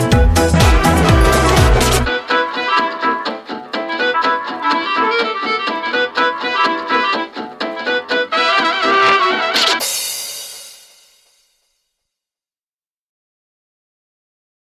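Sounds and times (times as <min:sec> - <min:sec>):
steaming clarinet playing: 0:00.1 - 0:03.3, 0:03.9 - 0:09.8.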